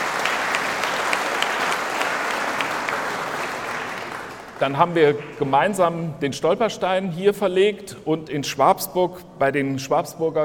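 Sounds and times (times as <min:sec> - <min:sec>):
audience applause: 0:00.0 - 0:05.4
speech: 0:04.6 - 0:10.4.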